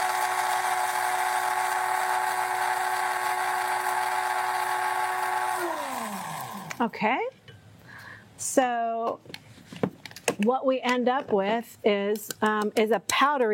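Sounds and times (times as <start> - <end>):
electric coffee grinder grinding seeds: 0.0 - 6.9
speech: 6.8 - 7.3, 8.4 - 9.4, 10.4 - 13.5.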